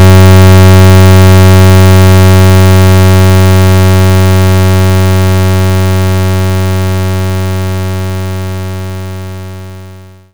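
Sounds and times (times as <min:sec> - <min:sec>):
75 Hz pulse tone: 0:00.0 - 0:07.8.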